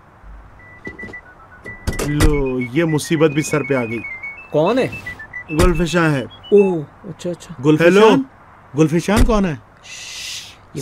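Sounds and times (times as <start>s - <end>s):
door being opened: 0.8s - 2.5s
speech: 2.1s - 10.2s.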